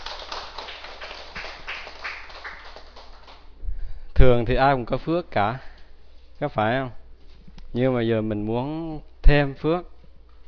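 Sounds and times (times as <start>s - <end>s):
audience applause: 0.0s - 3.4s
speech: 4.2s - 5.7s, 6.4s - 7.0s, 7.7s - 9.9s.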